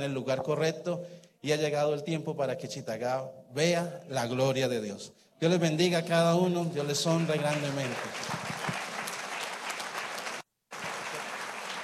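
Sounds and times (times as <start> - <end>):
speech: 0.0 - 8.5
audience applause: 6.8 - 11.8.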